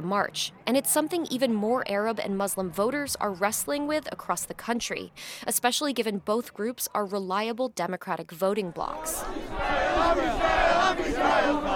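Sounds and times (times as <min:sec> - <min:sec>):
speech: 0:00.0 - 0:11.7
crowd chanting at a march: 0:08.8 - 0:11.7.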